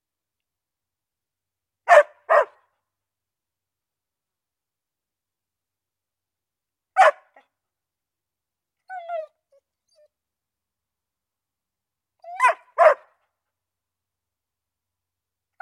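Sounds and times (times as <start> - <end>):
dog barking: 1.9 - 2.7, 7.0 - 7.4, 12.4 - 13.2.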